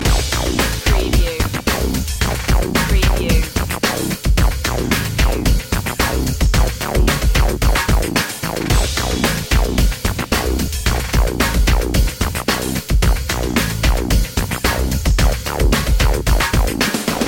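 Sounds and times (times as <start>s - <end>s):
underscore music: 0.0s - 17.2s.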